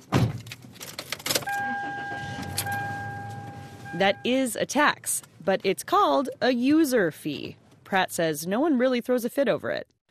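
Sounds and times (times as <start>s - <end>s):
old tan Chevy car clicking and rattling: 0.0s - 3.6s
old tan Chevy car engine humming: 1.1s - 6.3s
thin high tone: 1.5s - 4.4s
speech: 3.9s - 9.9s.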